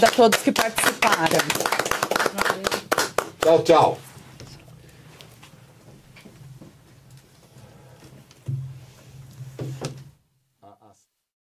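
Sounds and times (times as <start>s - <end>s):
speech: 0.0s - 1.9s, 3.5s - 4.1s
round of applause: 0.0s - 3.8s.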